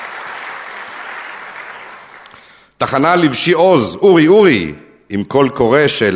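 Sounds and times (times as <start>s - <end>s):
crowd clapping: 0.0s - 2.6s
speech: 2.8s - 6.1s.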